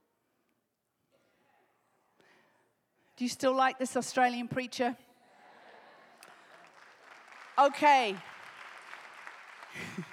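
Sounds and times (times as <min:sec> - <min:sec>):
speech: 0:03.2 - 0:05.1, 0:07.6 - 0:08.3
audience applause: 0:06.2 - 0:10.1.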